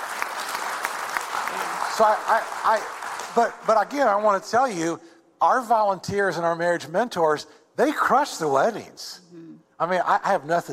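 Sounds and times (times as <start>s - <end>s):
audience clapping: 0.0s - 4.4s
speech: 2.0s - 10.7s.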